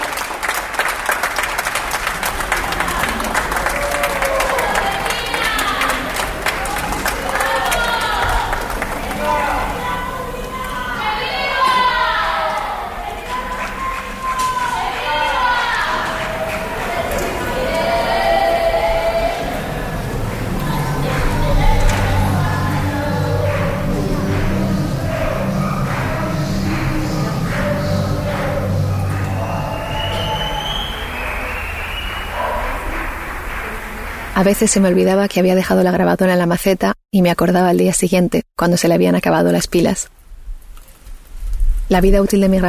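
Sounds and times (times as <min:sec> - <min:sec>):
neighbours applauding from balconies: 0:00.0 - 0:35.3
distant shouting in favour of public health care: 0:02.0 - 0:34.3
speech: 0:34.4 - 0:40.1, 0:41.9 - 0:42.6.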